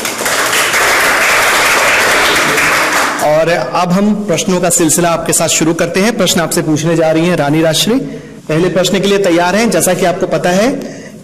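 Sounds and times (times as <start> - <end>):
audience applause: 0.0 - 3.2
speech: 3.4 - 11.0.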